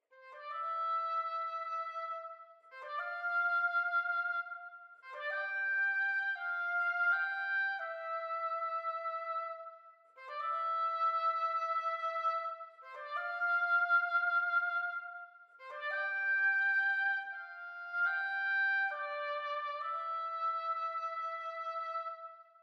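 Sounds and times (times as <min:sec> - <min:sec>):
solo oboe classical mix: 0:00.0 - 0:22.6.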